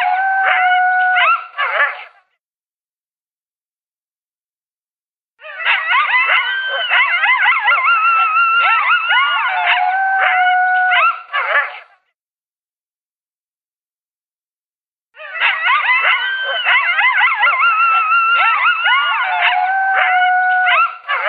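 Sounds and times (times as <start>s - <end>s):
coyote howling and yipping: 0.0s - 2.1s, 5.4s - 11.8s, 15.2s - 21.2s.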